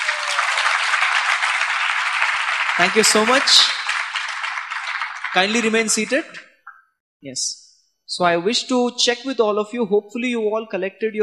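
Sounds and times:
audience applause: 0.0s - 6.4s
speech: 2.8s - 3.8s, 5.3s - 6.5s, 7.2s - 11.2s.

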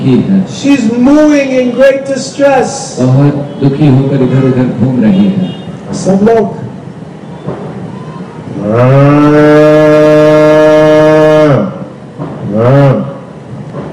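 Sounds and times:
speech: 0.1s - 6.6s, 8.6s - 10.2s
human voice imitating a cow mooing in distress: 8.6s - 13.2s.

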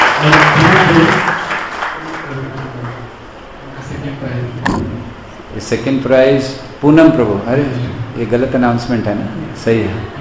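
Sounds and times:
audience applause: 0.0s - 3.0s
speech: 0.2s - 1.3s, 5.6s - 10.1s.

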